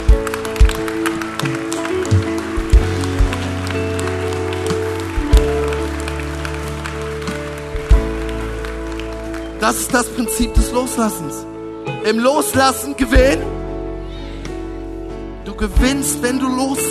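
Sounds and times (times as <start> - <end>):
audience applause: 0.0 - 10.8
speech: 9.7 - 13.6, 15.5 - 16.8.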